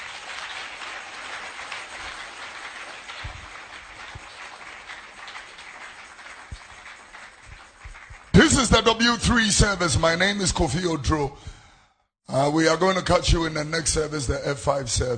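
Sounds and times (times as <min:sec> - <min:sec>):
audience clapping: 0:00.0 - 0:11.0
speech: 0:08.5 - 0:11.6, 0:12.3 - 0:15.1.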